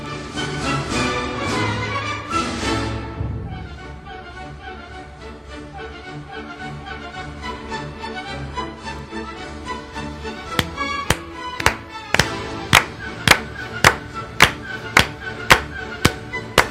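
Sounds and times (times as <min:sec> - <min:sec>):
orchestra playing a march: 0:00.2 - 0:07.0
audience clapping along to a march: 0:10.6 - 0:16.6.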